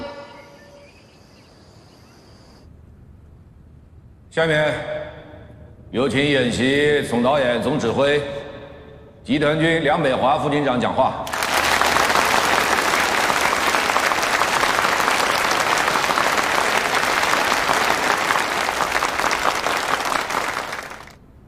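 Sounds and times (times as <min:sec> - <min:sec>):
speech: 0:04.3 - 0:05.0, 0:05.9 - 0:08.4, 0:09.2 - 0:11.4
large crowd applause: 0:11.3 - 0:21.2.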